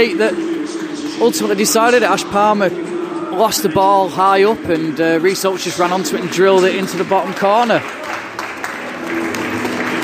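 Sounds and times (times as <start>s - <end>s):
speech: 0.0s - 0.5s, 1.2s - 8.2s
football fans applauding the team off: 4.6s - 10.0s.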